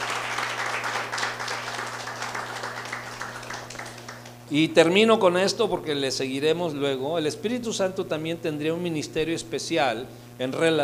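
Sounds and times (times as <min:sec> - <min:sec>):
audience applause: 0:00.0 - 0:04.4
speech: 0:04.5 - 0:10.8.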